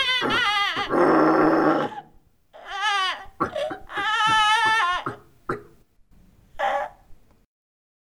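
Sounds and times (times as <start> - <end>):
animal imitations: 0.0 - 2.2, 3.2 - 5.8.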